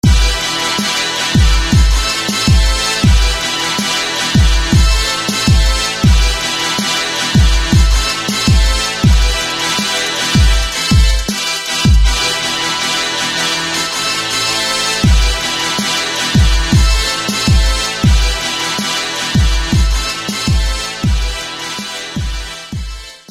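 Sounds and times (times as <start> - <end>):
brass instruments: 0.0 - 23.2.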